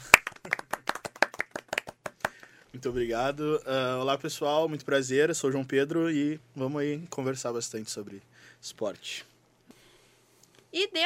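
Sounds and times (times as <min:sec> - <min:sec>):
hand claps: 0:00.0 - 0:02.6
speech: 0:02.8 - 0:09.3, 0:10.8 - 0:11.0.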